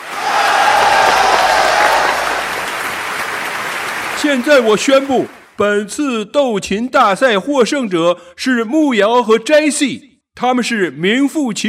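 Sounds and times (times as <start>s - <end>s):
warm applause: 0.0s - 5.6s
speech: 4.3s - 11.6s.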